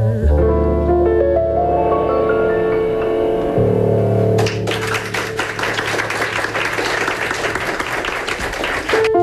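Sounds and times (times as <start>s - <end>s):
song closing on a held chord: 0.1s - 6.5s
crowd applause: 4.4s - 9.1s.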